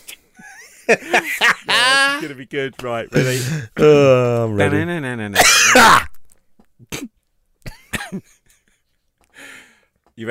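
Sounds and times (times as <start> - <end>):
laughter: 0.4 - 2.3
speech: 0.9 - 6.1, 8.1 - 8.4
person coughing: 5.4 - 6.0, 6.8 - 8.2.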